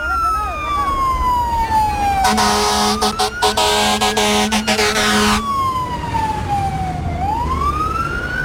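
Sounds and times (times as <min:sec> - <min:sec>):
fire engine siren arriving at a traffic accident: 0:00.1 - 0:08.4
fire engine horn blast: 0:02.2 - 0:05.4.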